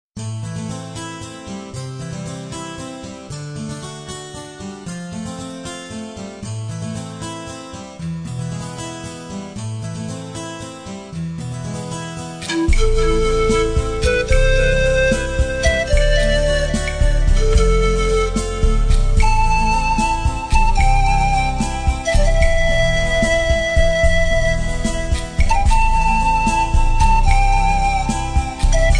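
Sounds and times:
ocarina: 0:07.4 - 0:28.9.

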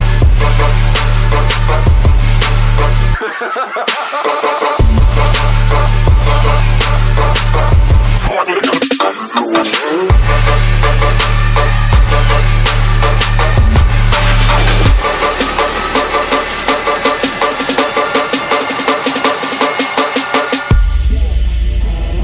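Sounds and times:
dubstep music: 0:00.0 - 0:22.2
laughter: 0:03.2 - 0:04.8.

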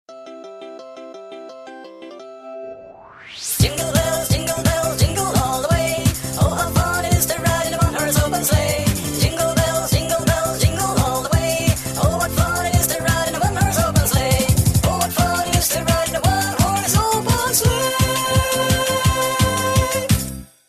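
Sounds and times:
Christmas song: 0:00.1 - 0:20.6.

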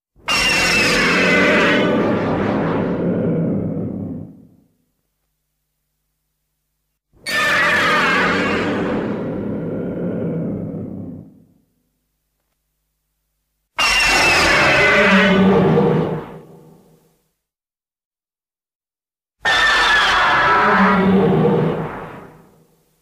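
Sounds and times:
roar: 0:00.3 - 0:04.6, 0:07.3 - 0:11.6, 0:13.8 - 0:16.6, 0:19.4 - 0:22.6.

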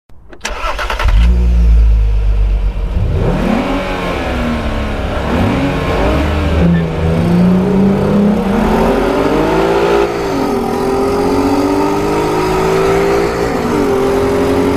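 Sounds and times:
VW R32 engine starting: 0:00.2 - 0:14.7.

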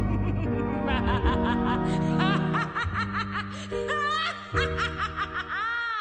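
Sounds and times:
nightmare laughter: 0:00.0 - 0:05.9.

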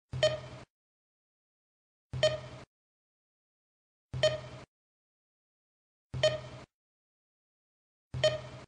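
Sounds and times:
alarm: 0:00.2 - 0:00.6, 0:02.2 - 0:02.6, 0:04.2 - 0:04.6, 0:06.2 - 0:06.6, 0:08.2 - 0:08.6.

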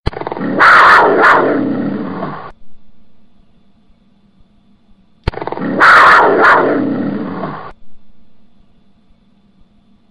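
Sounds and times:
lion roaring: 0:00.1 - 0:02.5, 0:05.4 - 0:07.7.

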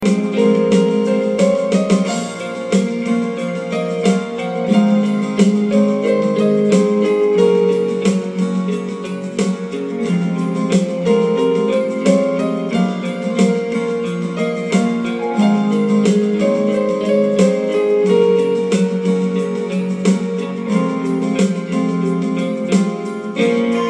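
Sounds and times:
instrumental music: 0:00.0 - 0:23.8.

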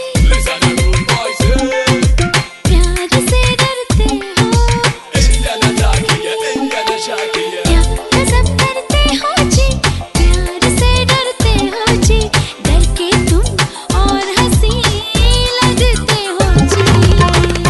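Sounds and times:
Bollywood remix song: 0:00.2 - 0:17.6.

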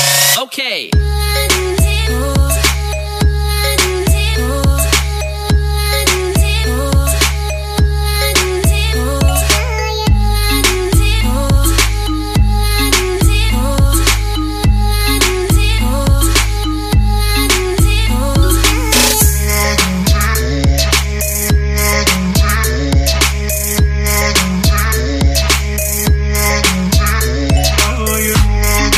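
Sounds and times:
trap beat: 0:00.0 - 0:28.9.

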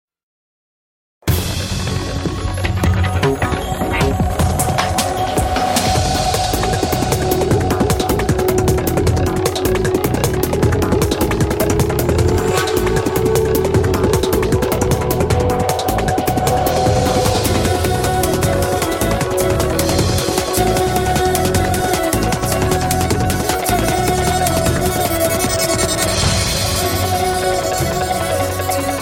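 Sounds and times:
quiz show waiting music: 0:01.3 - 0:29.0.

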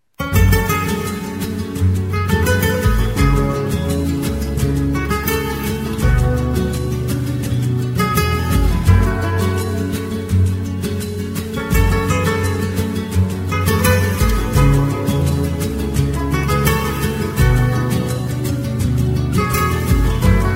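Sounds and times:
romantic guitar music: 0:00.2 - 0:20.5.

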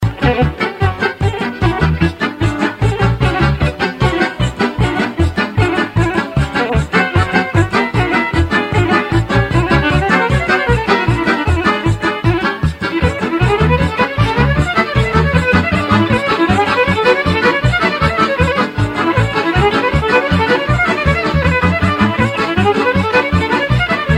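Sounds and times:
old Serbian music: 0:00.0 - 0:24.1.

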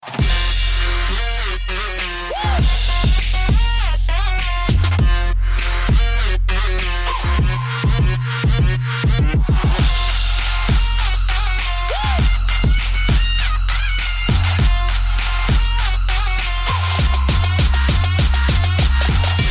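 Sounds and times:
oriental trap music: 0:00.0 - 0:19.4.

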